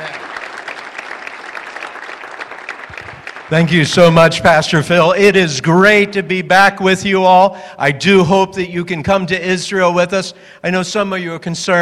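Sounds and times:
audience applause welcoming a speaker: 0:00.0 - 0:04.2
speech: 0:03.5 - 0:11.7.

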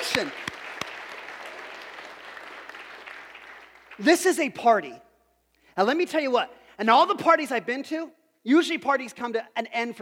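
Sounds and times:
audience applause: 0:00.0 - 0:04.0
speech: 0:00.2 - 0:00.5, 0:04.0 - 0:05.1, 0:05.8 - 0:09.9.

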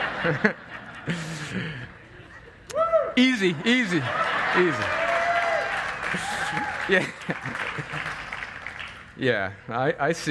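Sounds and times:
laughter: 0:00.0 - 0:02.7, 0:03.4 - 0:05.2, 0:05.9 - 0:08.5
speech: 0:00.2 - 0:01.9, 0:02.7 - 0:05.1, 0:06.1 - 0:08.3, 0:09.2 - 0:10.2
audience applause: 0:04.0 - 0:09.2.

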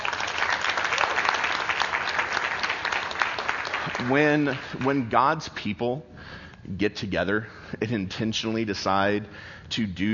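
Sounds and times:
audience applause: 0:00.0 - 0:05.2
speech: 0:04.0 - 0:10.1.

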